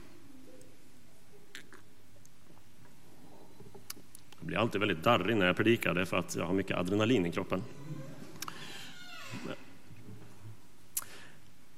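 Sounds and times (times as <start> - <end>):
person sipping water: 1.5 - 4.3
speech: 4.5 - 7.8.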